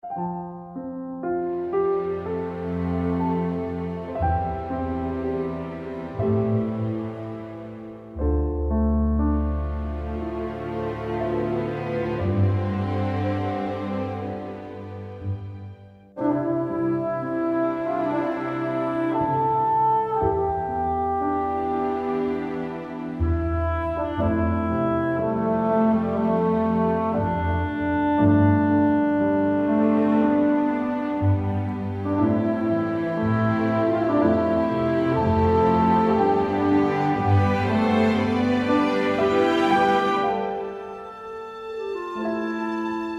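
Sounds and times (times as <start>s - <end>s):
field background music: 0.0s - 43.1s.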